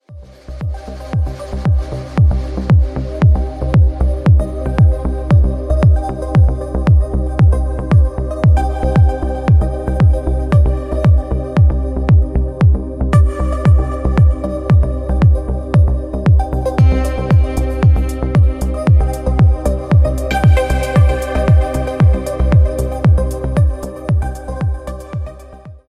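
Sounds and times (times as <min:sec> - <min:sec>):
club music: 0:00.6 - 0:25.8.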